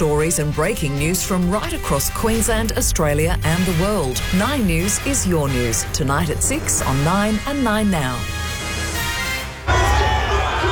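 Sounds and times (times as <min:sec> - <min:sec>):
speech: 0:00.0 - 0:08.4
stadium crowd roaring at a Broncos home game: 0:09.5 - 0:10.6.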